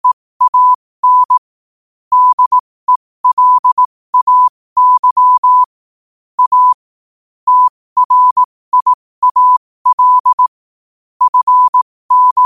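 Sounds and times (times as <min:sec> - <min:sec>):
morse code at 5 wpm: 0:00.0 - 0:01.4, 0:02.1 - 0:05.7, 0:06.4 - 0:06.8, 0:07.5 - 0:10.5, 0:11.2 - 0:12.4.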